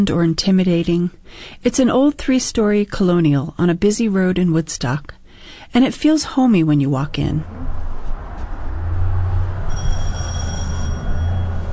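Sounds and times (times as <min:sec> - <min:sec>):
speech: 0:00.0 - 0:07.8
loud entry door bell ringing: 0:09.7 - 0:11.7.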